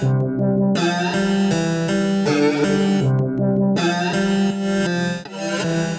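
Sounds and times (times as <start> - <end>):
harpsichord: 0.8 - 3.1, 3.8 - 5.9.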